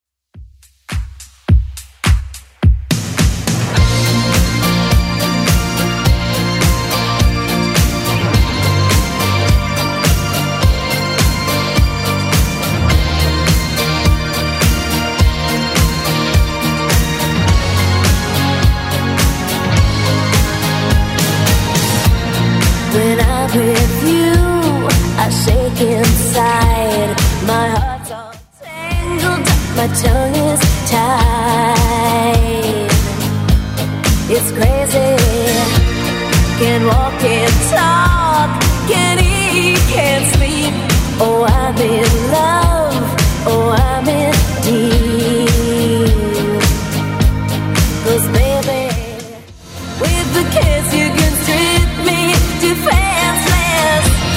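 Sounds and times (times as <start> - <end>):
1980s club edit dance music at 105 bpm: 0.9 - 54.3.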